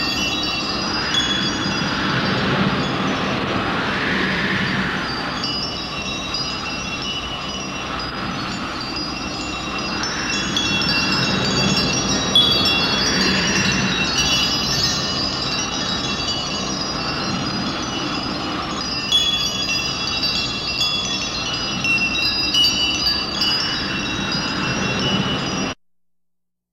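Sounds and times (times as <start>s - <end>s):
planet atmosphere background ambience: 0.0s - 25.8s.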